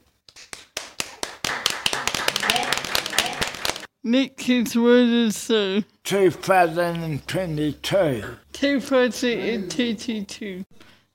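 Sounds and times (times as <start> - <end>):
hands clapping: 0.2 - 3.9
speech: 4.0 - 10.8.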